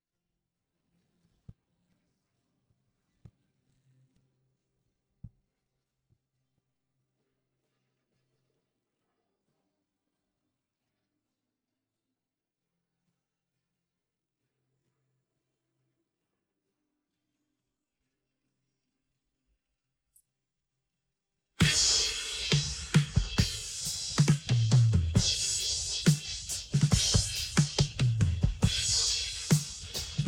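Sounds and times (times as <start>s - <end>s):
drums: 21.6s - 30.2s.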